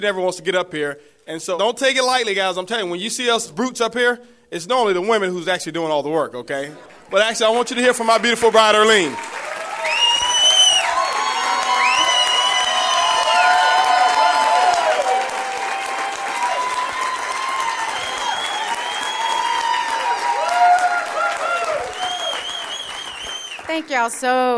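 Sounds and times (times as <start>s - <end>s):
speech: 0.0s - 9.5s, 23.9s - 24.5s
audience applause: 6.8s - 24.2s.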